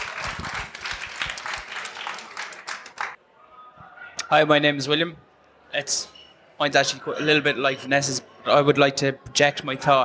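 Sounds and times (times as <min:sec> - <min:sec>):
audience applause: 0:00.0 - 0:03.2
speech: 0:04.3 - 0:10.0.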